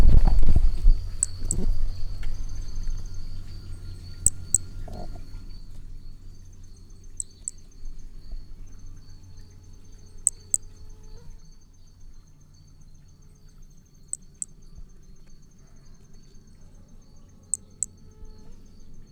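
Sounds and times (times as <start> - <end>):
Brachycephalus hermogenesi calling: 0.0 - 11.4.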